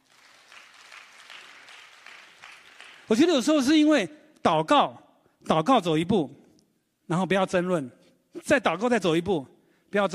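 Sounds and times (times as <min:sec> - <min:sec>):
audience applause: 0:00.0 - 0:03.2
speech: 0:03.1 - 0:06.4, 0:07.1 - 0:10.1.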